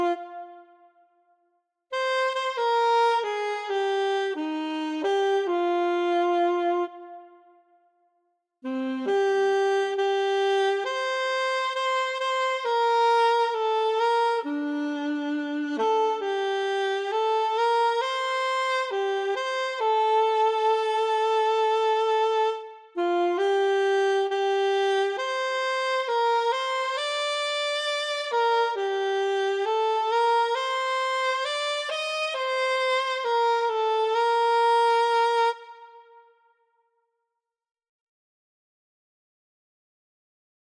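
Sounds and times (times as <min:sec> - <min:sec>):
alto saxophone: 0:00.0 - 0:01.2, 0:01.9 - 0:08.0, 0:08.6 - 0:36.6.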